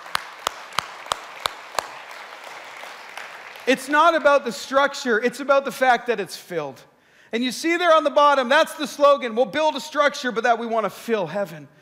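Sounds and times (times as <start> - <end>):
hand claps: 0.0 - 3.9
speech: 3.7 - 11.8.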